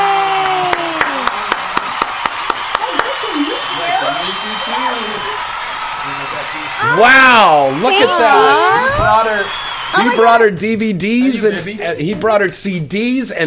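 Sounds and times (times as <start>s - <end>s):
audience applause welcoming a surprise guest on stage: 0.0s - 10.5s
excited voices: 0.0s - 11.9s
speech: 7.0s - 13.4s.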